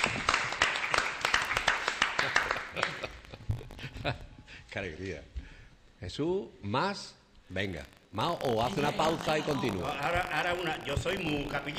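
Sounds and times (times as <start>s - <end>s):
audience applause: 0.0s - 3.2s
speech: 4.0s - 5.4s, 6.0s - 11.7s.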